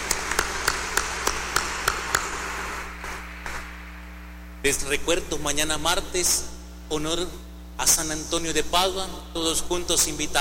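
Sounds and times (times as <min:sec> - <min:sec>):
audience applause: 0:00.0 - 0:02.9
speech: 0:04.6 - 0:10.3.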